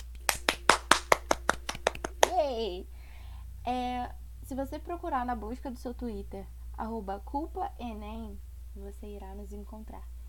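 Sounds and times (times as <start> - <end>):
hand claps: 0.0 - 2.5
speech: 2.6 - 3.0, 3.6 - 10.2.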